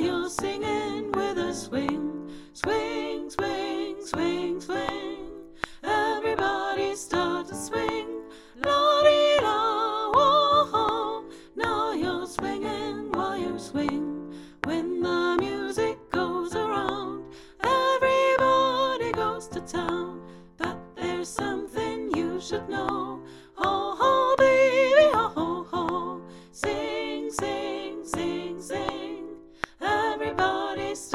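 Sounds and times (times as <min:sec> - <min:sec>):
soprano singing: 0:00.0 - 0:31.1.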